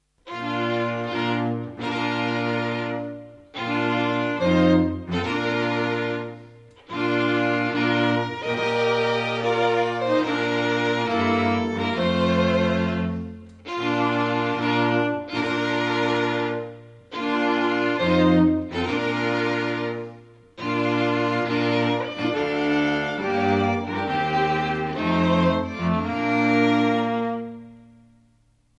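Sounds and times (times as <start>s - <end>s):
strings playing wedding music: 0.0s - 28.7s.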